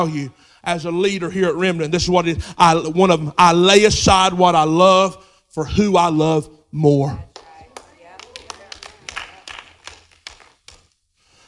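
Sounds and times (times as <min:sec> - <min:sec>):
speech: 0:00.0 - 0:07.3
few people clapping: 0:07.3 - 0:11.1.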